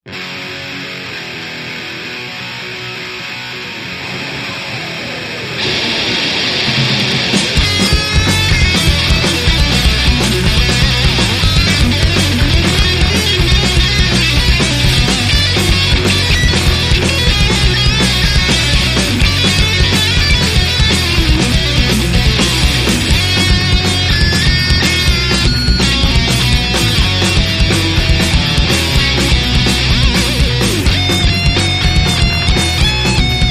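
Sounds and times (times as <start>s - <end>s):
lead guitar: 0.0s - 33.4s.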